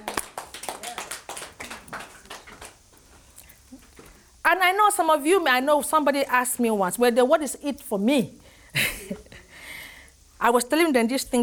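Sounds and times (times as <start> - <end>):
audience clapping: 0.0 - 3.0
speech: 4.5 - 8.4, 10.4 - 11.4.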